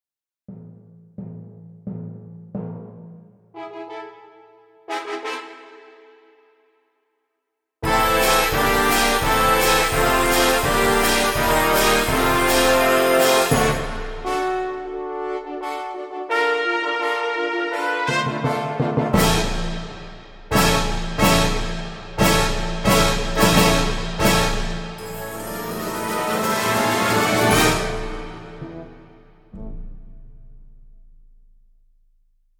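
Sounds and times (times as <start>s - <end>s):
brass instruments: 3.5s - 6.8s, 7.8s - 30.2s.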